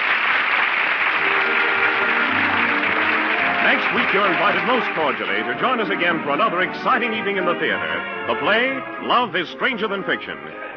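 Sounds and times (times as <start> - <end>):
theater audience applause: 0.0 - 7.0
speech: 3.7 - 10.7.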